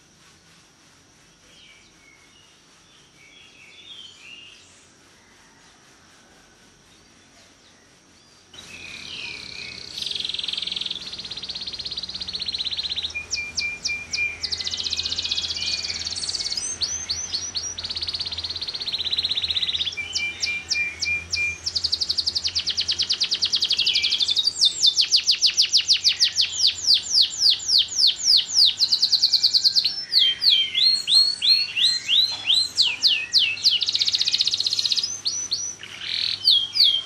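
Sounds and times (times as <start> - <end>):
bird trilling: 8.6 - 37.0.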